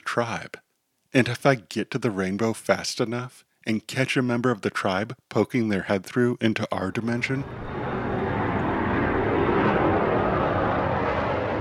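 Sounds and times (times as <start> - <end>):
speech: 0.2 - 7.9
thunder rumbling: 7.4 - 11.5.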